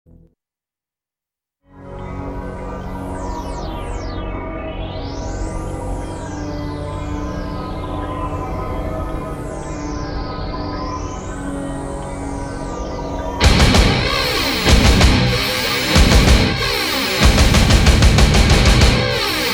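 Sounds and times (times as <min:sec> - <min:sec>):
instrumental music: 0:13.4 - 0:19.5.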